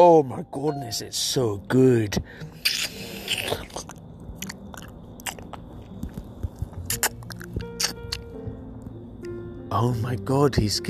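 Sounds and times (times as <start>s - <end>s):
speech: 0.0s - 4.0s, 9.7s - 10.8s
chewing and sucking boiled peanuts: 2.5s - 8.9s
slurping hot boiled peanuts: 2.6s - 5.7s, 6.8s - 8.3s.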